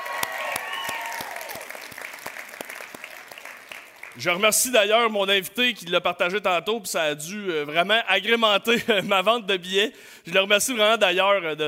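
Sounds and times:
live audience applauding: 0.0s - 4.6s
speech: 4.2s - 11.6s.

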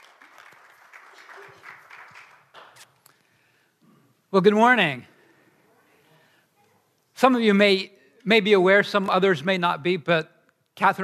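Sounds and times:
roaring round of applause: 0.0s - 2.8s
speech: 4.3s - 5.1s, 7.2s - 11.0s.

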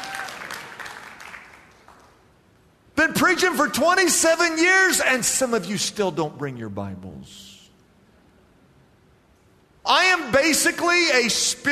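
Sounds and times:
audience clapping: 0.0s - 2.4s
speech: 3.0s - 7.5s, 10.5s - 11.7s.

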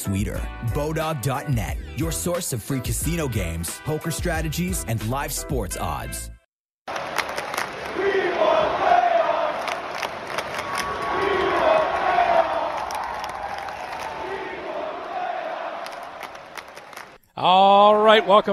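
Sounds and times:
speech: 0.0s - 6.3s, 17.4s - 18.5s
Ottawa Senators fans chanting at a hockey game: 6.9s - 17.2s
whoops and cheers: 10.4s - 17.0s.

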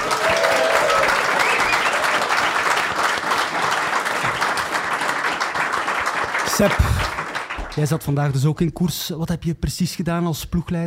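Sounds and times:
audience applause: 0.0s - 8.2s
speech: 6.6s - 7.1s, 7.8s - 10.8s.

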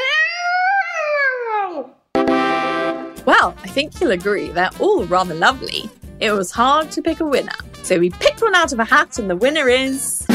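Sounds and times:
child imitating an elephant's trumpet: 0.0s - 2.0s
speech: 3.3s - 10.2s.

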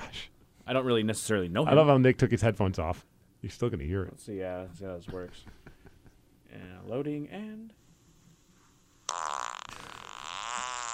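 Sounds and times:
speech: 0.7s - 5.8s, 6.5s - 7.8s
recorded fart: 9.1s - 10.9s.

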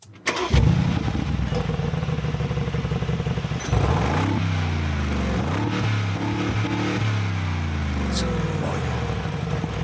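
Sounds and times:
Mercedes-AMG G63 V8 engine starting and rumbling: 0.2s - 4.4s
Mercedes-AMG G63 V8 engine revving: 0.3s - 9.8s.

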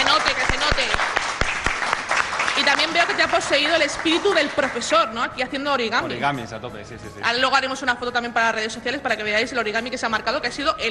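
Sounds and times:
audience applause: 0.0s - 4.9s
speech: 3.4s - 10.8s.

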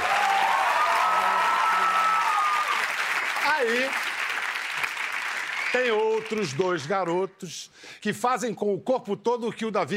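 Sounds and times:
audience applause: 0.0s - 6.9s
speech: 3.6s - 4.0s, 5.7s - 9.9s.

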